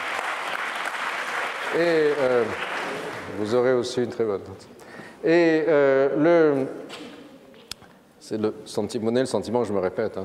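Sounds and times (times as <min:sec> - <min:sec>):
audience applauding a correct answer: 0:00.0 - 0:03.4
speech: 0:01.7 - 0:07.0, 0:08.3 - 0:10.2.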